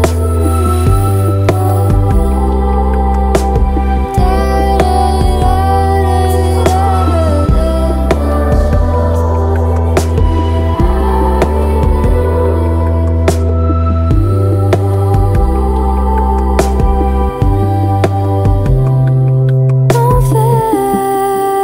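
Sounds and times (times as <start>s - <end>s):
dark trap beat: 0.1s - 21.5s.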